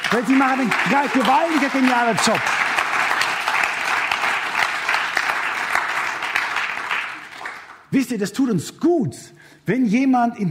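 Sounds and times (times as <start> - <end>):
audience applause: 0.0 - 7.8
speech: 0.1 - 2.6, 7.9 - 10.5.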